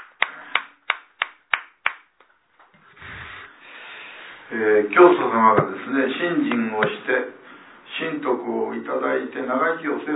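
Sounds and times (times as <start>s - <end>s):
sharp claps: 0.0s - 2.1s
speech: 4.5s - 7.4s, 8.0s - 10.1s.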